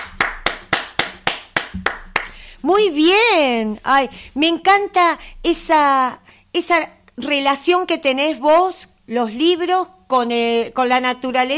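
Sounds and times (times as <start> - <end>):
applause: 0.0 - 2.4
speech: 2.7 - 11.5.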